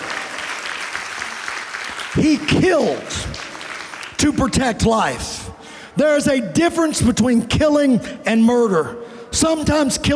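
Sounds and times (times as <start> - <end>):
audience hand clapping: 0.0 - 4.8
speech: 2.2 - 3.4, 4.2 - 10.1.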